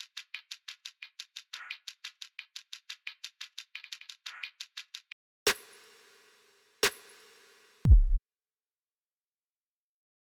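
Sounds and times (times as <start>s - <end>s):
drum: 5.5s - 6.2s, 6.8s - 8.2s.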